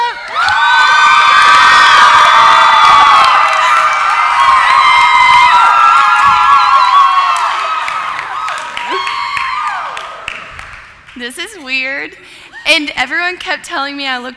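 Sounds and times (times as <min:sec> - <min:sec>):
applause: 0:00.1 - 0:11.2
speech: 0:11.3 - 0:14.3.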